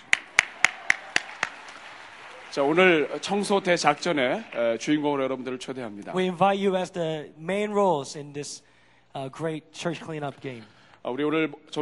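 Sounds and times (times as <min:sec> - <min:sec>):
audience clapping in unison: 0:00.0 - 0:05.5
speech: 0:02.6 - 0:11.7.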